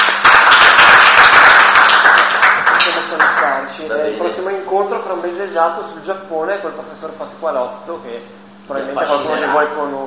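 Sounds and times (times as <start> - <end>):
audience applause: 0.0 - 3.6
speech: 5.0 - 10.0.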